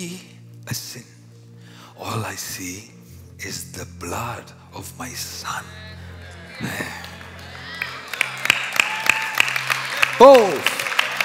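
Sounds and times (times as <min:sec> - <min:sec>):
speech: 0:00.0 - 0:01.2, 0:02.0 - 0:05.9, 0:06.6 - 0:07.1, 0:10.2 - 0:10.8
audience clapping hands: 0:06.4 - 0:11.2.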